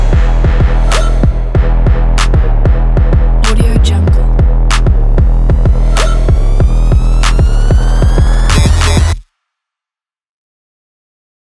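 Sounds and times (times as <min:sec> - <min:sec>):
trap beat: 0:00.0 - 0:09.2.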